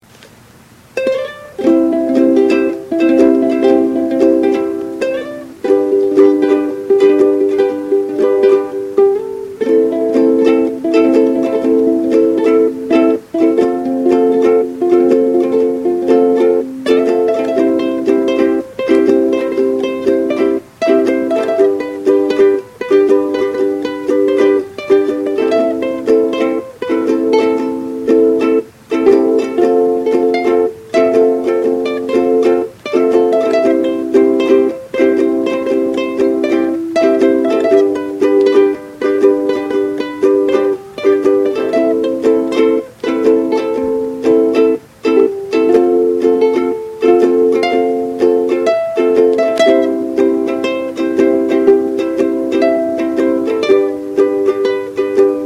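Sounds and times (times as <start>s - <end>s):
ukulele instrumental: 0.0s - 55.4s.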